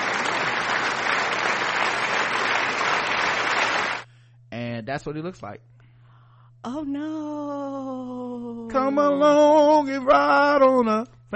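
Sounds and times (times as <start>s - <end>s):
applause sound effect: 0.0s - 4.1s
speech: 4.9s - 5.8s, 6.6s - 11.3s.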